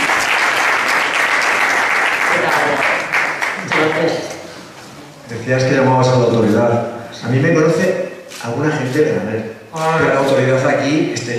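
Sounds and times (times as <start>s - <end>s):
audience applause: 0.0s - 4.2s
speech: 5.5s - 11.3s.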